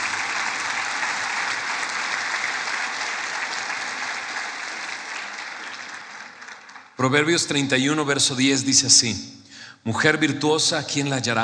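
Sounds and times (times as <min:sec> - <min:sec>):
audience applause for the mothers: 0:00.0 - 0:07.2
speech: 0:07.0 - 0:11.4.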